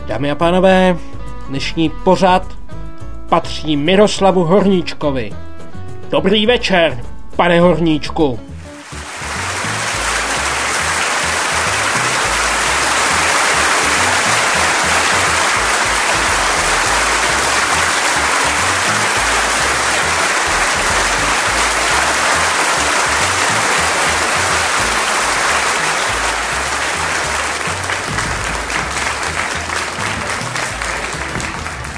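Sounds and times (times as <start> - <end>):
speech: 0.1 - 2.6, 3.3 - 5.5, 6.1 - 8.5
audience applause: 8.8 - 31.9.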